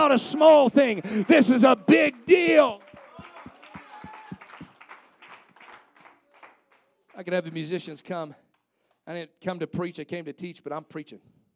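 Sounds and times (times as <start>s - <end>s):
voices and cheering: 0.0s - 4.9s
crowd clapping in a quick steady rhythm: 0.0s - 9.1s
speech: 0.1s - 2.8s, 7.2s - 8.4s, 9.1s - 11.4s.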